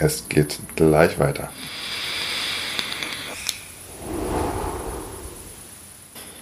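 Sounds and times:
speech: 0.0s - 1.9s
drag from an e-cigarette: 3.9s - 5.7s.

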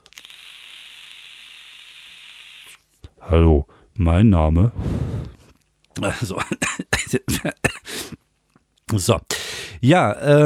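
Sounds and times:
vaping on an e-cigarette: 0.0s - 2.8s, 4.8s - 5.6s
speech: 3.2s - 5.0s, 6.0s - 8.2s, 9.0s - 10.4s.

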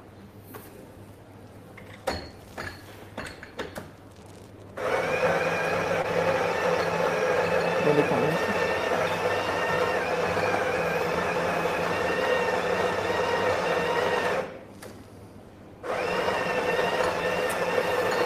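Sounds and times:
coffee machine grinding beans and brewing coffee: 4.2s - 14.6s, 15.8s - 18.2s.

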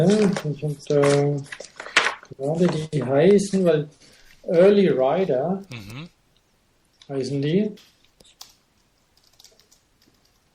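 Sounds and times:
speech: 0.0s - 6.2s, 7.1s - 7.9s
computer keyboard typing: 8.2s - 10.5s.

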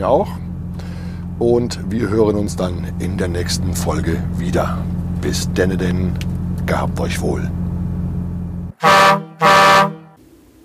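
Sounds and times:
speech: 0.0s - 0.5s, 1.4s - 7.6s, 8.8s - 9.5s
steady low engine-like rumble: 0.0s - 10.6s
rich brassy air horn blasts: 8.7s - 10.2s.

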